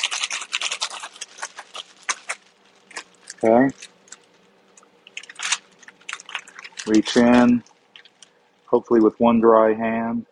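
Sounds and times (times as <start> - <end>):
plastic bag of flour with chicken pieces being shaken: 0.0 - 4.4, 5.2 - 8.2
speech: 3.4 - 3.9, 6.9 - 7.7, 8.7 - 10.3.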